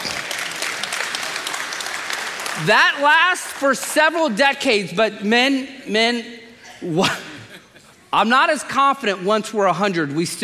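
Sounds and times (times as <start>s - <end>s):
crowd clapping: 0.0s - 4.7s
speech: 2.6s - 7.3s, 8.1s - 10.4s.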